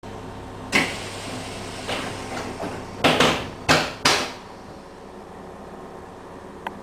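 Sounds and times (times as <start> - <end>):
train klaxon: 0.0 - 5.2.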